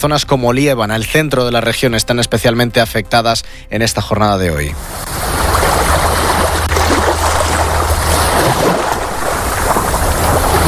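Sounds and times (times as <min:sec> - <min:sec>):
speech: 0:00.0 - 0:05.2
sea waves at a beach: 0:04.8 - 0:10.6.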